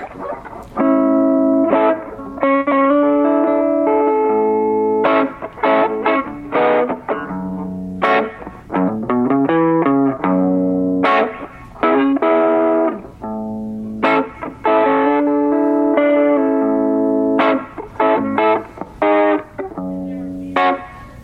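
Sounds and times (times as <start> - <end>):
electric guitar through overdrive pedal with clean crunch tone: 0.0 - 21.2.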